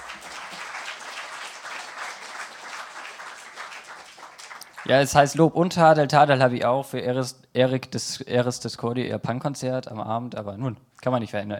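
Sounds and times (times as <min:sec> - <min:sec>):
audience applause: 0:00.0 - 0:05.3
speech: 0:04.8 - 0:11.5.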